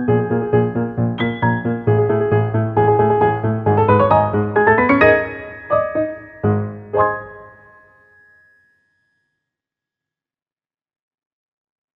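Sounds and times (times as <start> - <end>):
piano: 0.0 - 8.8.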